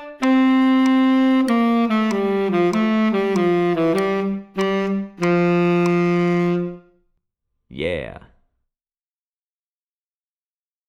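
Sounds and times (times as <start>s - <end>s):
tenor saxophone playing running eighth notes: 0.0s - 7.0s.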